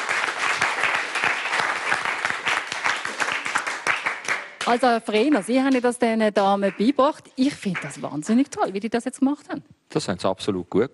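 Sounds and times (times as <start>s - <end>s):
audience applause: 0.0s - 5.5s
speech: 4.7s - 10.9s.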